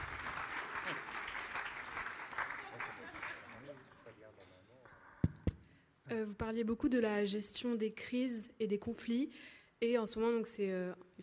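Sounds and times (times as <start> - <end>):
audience applause: 0.0 - 4.4
speech: 0.9 - 1.2, 6.1 - 11.2.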